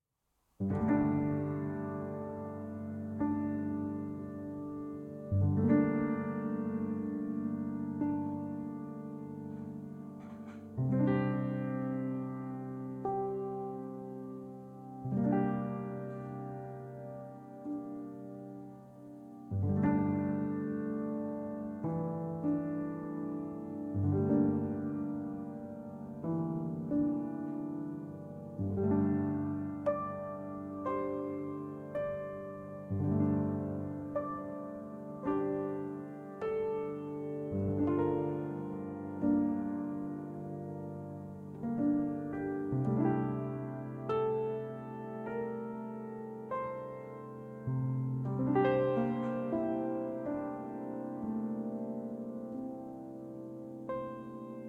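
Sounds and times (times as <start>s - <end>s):
summer heat music: 0.5s - 54.6s.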